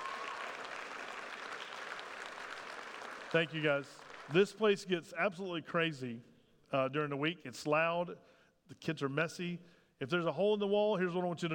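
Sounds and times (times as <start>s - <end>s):
audience applause: 0.0s - 4.4s
speech: 3.3s - 11.5s.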